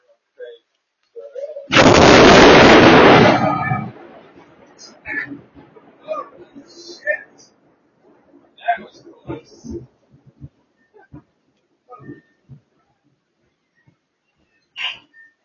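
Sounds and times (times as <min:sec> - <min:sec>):
boom: 0:01.7 - 0:06.2.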